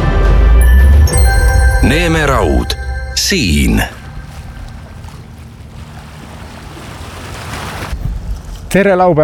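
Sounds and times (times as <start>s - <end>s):
low boat engine rumble in Venice: 0.0s - 8.7s
speech: 1.9s - 4.0s, 8.7s - 9.2s
lapping water in Venice: 3.2s - 8.7s.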